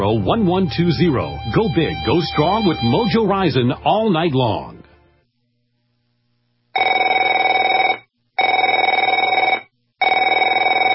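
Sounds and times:
speech: 0.0s - 4.8s
telephone bell ringing: 6.8s - 10.9s.

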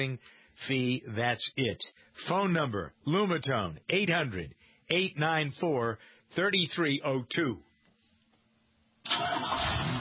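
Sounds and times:
speech: 0.0s - 7.7s, 9.1s - 9.9s
car engine starting and rumbling: 9.0s - 9.9s.

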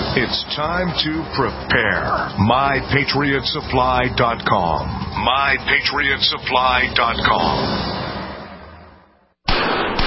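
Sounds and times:
speech: 0.2s - 7.9s
.44 Magnum pistol gunshots: 9.5s - 10.0s.

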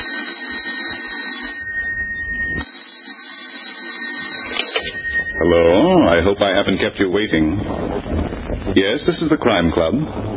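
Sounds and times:
telephone ringing with a shrill electric bell: 0.0s - 6.2s
speech: 5.4s - 10.3s.

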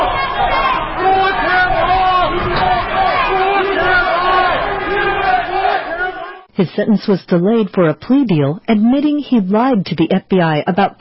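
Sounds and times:
large crowd chanting outside courthouse: 0.0s - 6.5s
speech: 6.6s - 10.9s.

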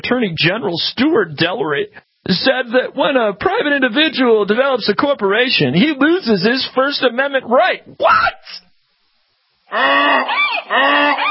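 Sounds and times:
speech: 0.0s - 8.7s, 9.7s - 11.2s
donkey braying: 9.7s - 11.2s.

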